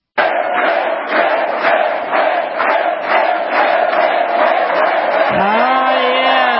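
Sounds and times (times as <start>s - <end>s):
crowd chanting at a campaign rally: 0.1s - 6.5s.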